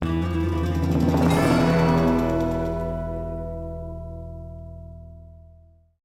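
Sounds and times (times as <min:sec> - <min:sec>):
quest bounty win jingle: 0:00.4 - 0:03.6.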